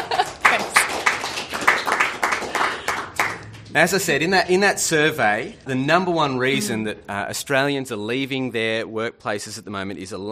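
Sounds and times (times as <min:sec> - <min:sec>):
audience applause: 0:00.0 - 0:04.5
speech: 0:03.7 - 0:10.2.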